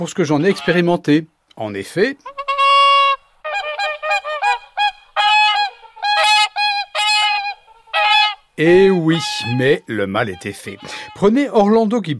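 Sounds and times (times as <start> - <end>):
speech: 0.0 - 2.4, 8.6 - 12.1
swan calling with bugling note and nasal honks: 0.3 - 0.9, 2.2 - 11.3.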